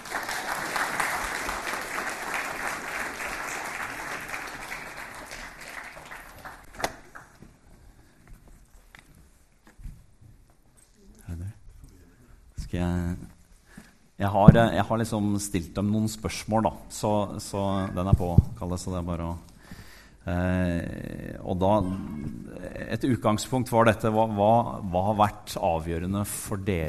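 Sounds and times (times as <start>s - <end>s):
audience applause: 0.0s - 7.5s
speech: 12.7s - 13.2s, 14.2s - 19.5s, 20.2s - 22.2s, 22.9s - 26.8s.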